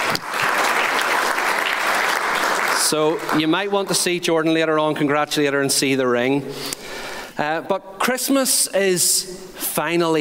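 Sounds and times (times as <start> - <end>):
round of applause: 0.0 - 4.0
speech: 2.9 - 10.2.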